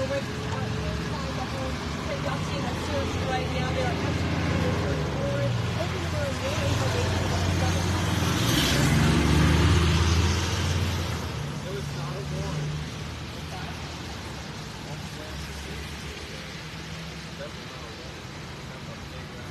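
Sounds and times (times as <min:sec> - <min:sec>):
people talking: 0:00.0 - 0:09.1, 0:11.4 - 0:19.4
armored police vehicles driving away from a home on Highland Avenue in Warwick: 0:00.0 - 0:19.4.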